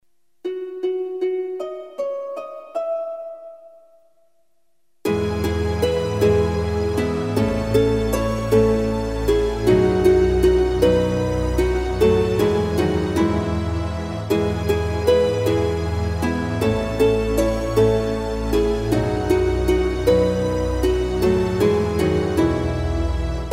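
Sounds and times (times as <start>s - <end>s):
instrumental music: 0.4s - 23.5s.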